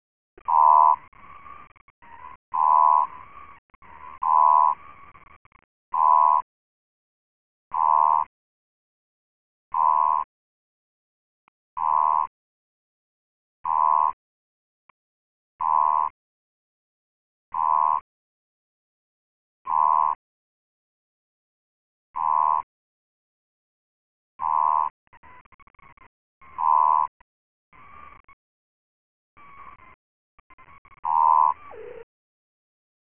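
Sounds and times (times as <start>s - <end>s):
Odontophrynus americanus advertisement call: 0.4s - 6.5s, 7.7s - 8.4s, 9.7s - 10.3s, 11.8s - 12.4s, 13.6s - 14.2s, 15.6s - 16.2s, 17.5s - 18.1s, 19.6s - 20.2s, 22.2s - 22.7s, 24.4s - 28.5s, 29.4s - 32.1s.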